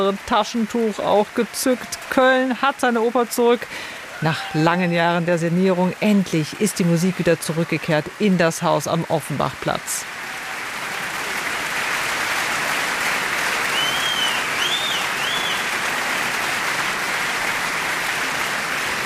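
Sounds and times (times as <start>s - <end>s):
speech: 0.0s - 10.2s
large opera audience applause: 0.0s - 19.0s
faint whistles from opera audience: 13.7s - 15.6s.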